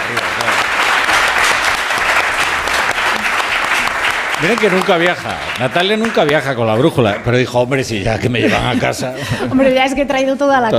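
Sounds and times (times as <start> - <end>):
audience applause: 0.0 - 8.0
speech: 4.4 - 10.7
laughter: 8.0 - 10.0.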